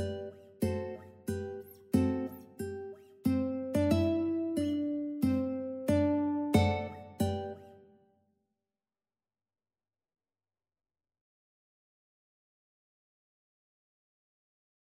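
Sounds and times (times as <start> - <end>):
ukulele march: 0.0 - 7.7.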